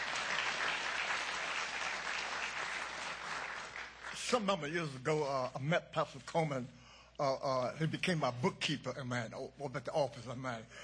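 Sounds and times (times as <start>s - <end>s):
audience clapping hands: 0.0s - 4.7s
speech: 4.3s - 10.8s.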